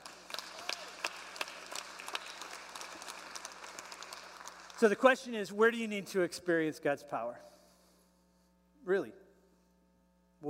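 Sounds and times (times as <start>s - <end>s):
audience clapping: 0.0s - 5.4s
speech: 4.8s - 7.5s, 8.8s - 9.2s.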